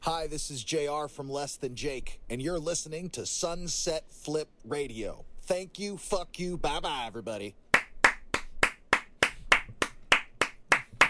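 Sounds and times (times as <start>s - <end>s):
speech: 0.1s - 7.6s
hands clapping: 7.7s - 11.0s.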